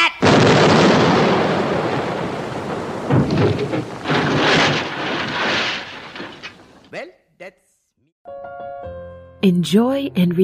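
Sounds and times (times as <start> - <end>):
cannon fire: 0.2 - 6.8
speech: 9.4 - 10.4.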